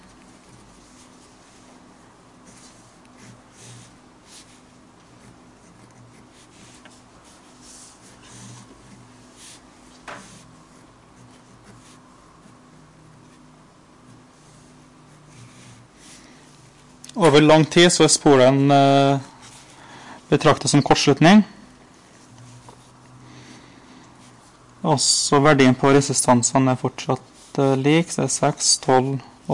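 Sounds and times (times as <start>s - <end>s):
pen or pencil scratching on paper drawing an electric circuit diagram: 2.4s - 16.3s
speech: 17.2s - 19.3s, 20.3s - 21.6s, 24.9s - 29.5s.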